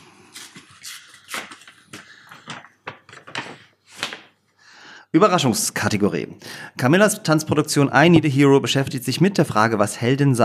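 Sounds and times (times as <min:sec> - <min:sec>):
paper envelope being opened: 0:00.4 - 0:04.4
speech: 0:05.2 - 0:10.4.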